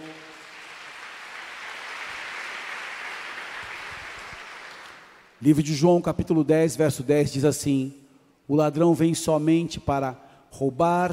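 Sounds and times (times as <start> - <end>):
audience applauding: 0.0 - 5.4
speech: 5.4 - 11.1.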